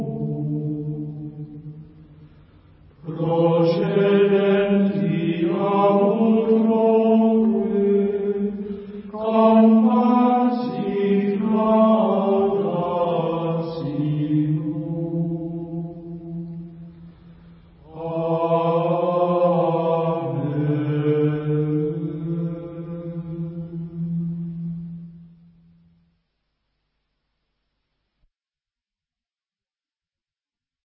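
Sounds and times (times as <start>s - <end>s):
Gregorian chant: 0.0s - 1.9s, 3.0s - 17.2s, 17.8s - 25.6s.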